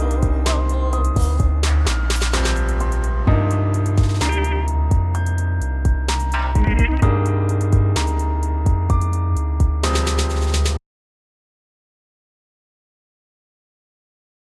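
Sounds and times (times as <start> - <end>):
song without reverb: 0.0 - 10.8.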